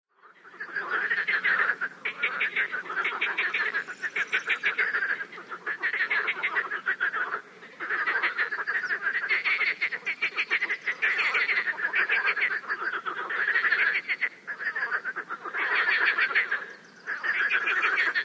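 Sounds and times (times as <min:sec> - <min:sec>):
frog giving rough pulsing croaks: 0:00.1 - 0:18.2.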